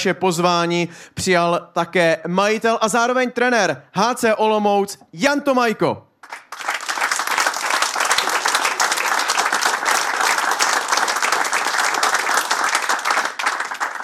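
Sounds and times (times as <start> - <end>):
speech: 0.0 - 6.4
large audience applause: 6.2 - 14.0.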